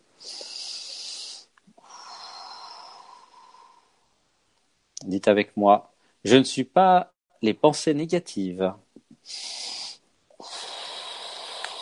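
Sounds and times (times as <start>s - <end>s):
deep breath: 0.2s - 4.2s, 9.2s - 11.8s
speech: 5.0s - 9.6s.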